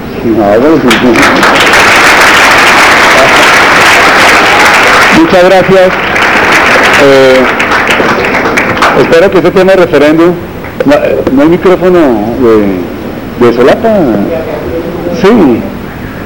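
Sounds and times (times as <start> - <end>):
speech: 0.2 - 1.8, 5.2 - 6.1, 7.0 - 7.6, 9.0 - 15.7
audience applause: 0.9 - 9.4.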